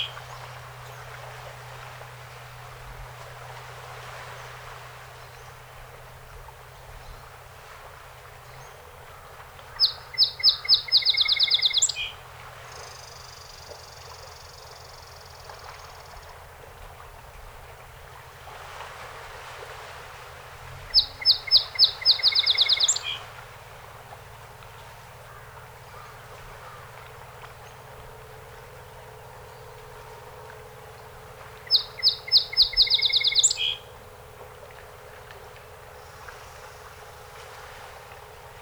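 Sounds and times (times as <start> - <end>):
song sparrow song: 8.3 - 16.4, 20.7 - 37.8.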